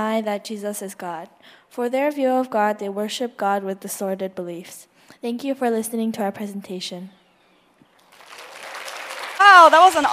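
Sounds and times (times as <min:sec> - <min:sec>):
speech: 0:00.0 - 0:07.2, 0:09.5 - 0:10.1
audience applause: 0:08.0 - 0:10.1.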